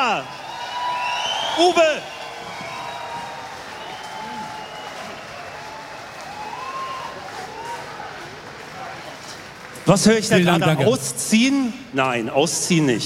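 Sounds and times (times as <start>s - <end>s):
scattered cheers and shouts: 0.0s - 10.0s
crowd applause: 0.0s - 11.1s
speech: 1.6s - 2.2s, 9.9s - 13.0s.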